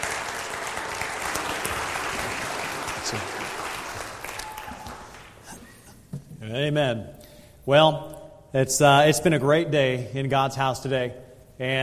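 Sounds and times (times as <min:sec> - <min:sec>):
church congregation at Grandview applauding to welcome a returning missionary: 0:00.0 - 0:05.6
speech: 0:03.1 - 0:03.4, 0:06.5 - 0:11.8.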